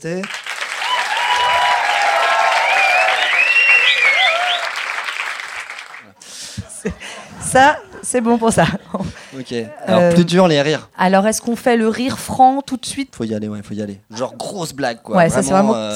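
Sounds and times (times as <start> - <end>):
speech: 0.0 - 0.4, 6.8 - 15.9
audience applause: 0.0 - 6.2
cheers: 0.2 - 6.0
shrill whistles: 0.8 - 5.4
laughter: 6.0 - 9.8.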